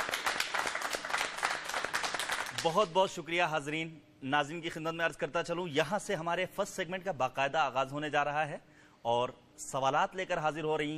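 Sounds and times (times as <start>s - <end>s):
audience clapping to welcome guest teams: 0.0s - 3.0s
speech: 2.6s - 10.9s.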